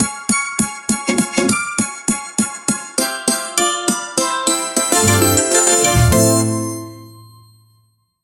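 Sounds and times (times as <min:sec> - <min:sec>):
joyful music: 0:00.0 - 0:07.8.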